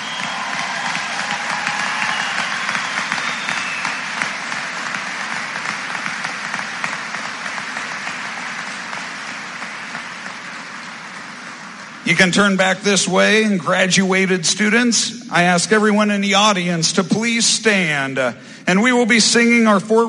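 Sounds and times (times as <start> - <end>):
round of applause: 0.0 - 12.3
speech: 12.1 - 20.0.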